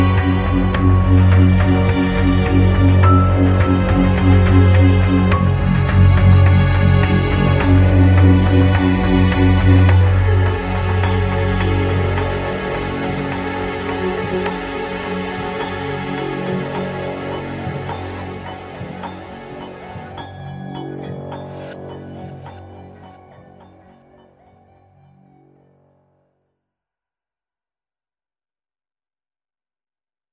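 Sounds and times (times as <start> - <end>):
cave trap music: 0.0 - 20.2.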